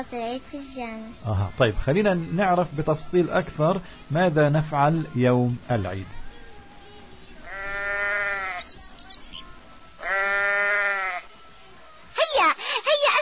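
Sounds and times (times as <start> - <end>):
speech: 0.0 - 6.2
sheep readied for the Eid sacrifice bleating: 7.4 - 9.4, 10.0 - 11.3.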